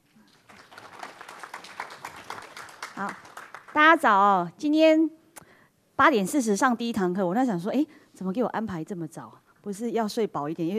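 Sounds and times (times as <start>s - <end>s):
audience applause: 0.2s - 3.8s
speech: 3.0s - 5.2s, 6.0s - 10.7s.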